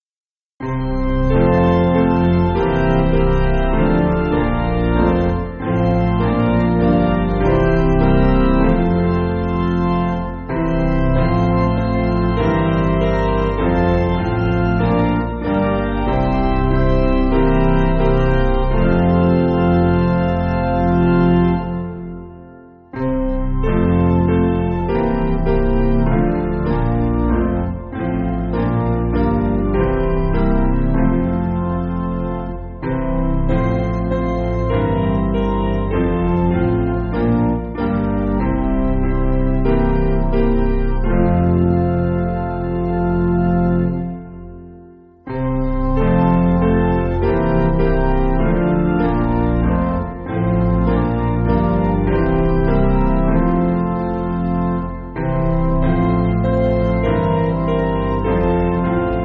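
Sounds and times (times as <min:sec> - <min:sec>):
piano backing music: 0:00.6 - 0:59.2.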